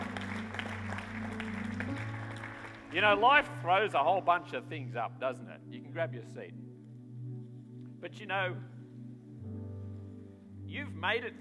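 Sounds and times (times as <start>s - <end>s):
audience applause: 0.0s - 3.6s
low sustained musical tone: 0.0s - 11.3s
speech: 3.0s - 6.7s, 8.0s - 8.7s, 10.7s - 11.3s.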